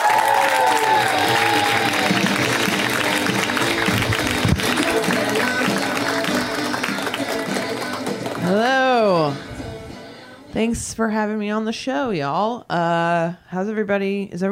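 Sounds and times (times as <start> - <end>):
audience whooping for a comedian: 0.0 - 7.0
audience clapping for a comedian being introduced onstage: 0.0 - 8.7
speech: 10.6 - 14.4.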